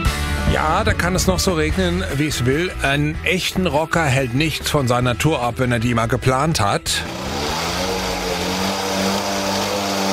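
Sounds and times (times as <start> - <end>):
speech: 0.6 - 7.4
small engines droning and revving: 6.9 - 10.1.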